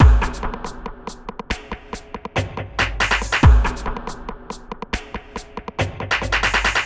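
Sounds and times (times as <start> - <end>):
hard trance beats: 0.0 - 6.8.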